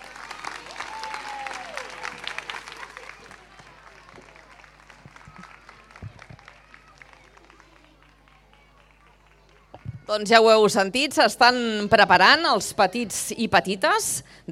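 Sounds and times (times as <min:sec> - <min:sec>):
audience clapping for children: 0:00.0 - 0:10.1
speech: 0:10.1 - 0:14.4.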